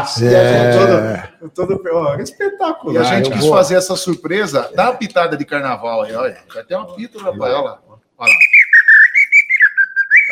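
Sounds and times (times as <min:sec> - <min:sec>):
speech: 0:00.0 - 0:08.5
person whistling an imitation of a thrush song: 0:08.2 - 0:10.2.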